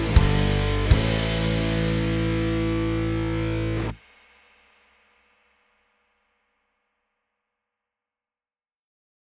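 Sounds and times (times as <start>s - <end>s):
power chord song: 0.0s - 4.0s.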